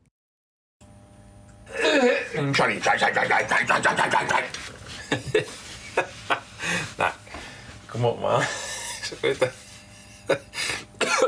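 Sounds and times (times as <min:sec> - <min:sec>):
speech: 0:02.0 - 0:06.2, 0:07.9 - 0:09.6, 0:10.3 - 0:10.7
laughter: 0:03.1 - 0:07.3, 0:08.4 - 0:10.8
person coughing after choking: 0:08.8 - 0:11.2.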